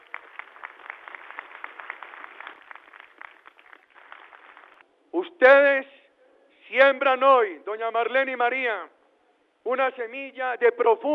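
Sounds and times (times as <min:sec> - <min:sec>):
audience applause: 0:00.0 - 0:04.8
speech: 0:05.2 - 0:06.0, 0:06.7 - 0:09.0, 0:09.6 - 0:11.1.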